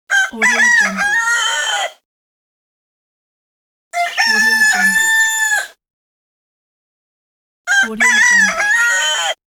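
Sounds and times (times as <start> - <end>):
rooster crowing: 0.1 - 2.0, 4.0 - 5.8, 7.7 - 9.4.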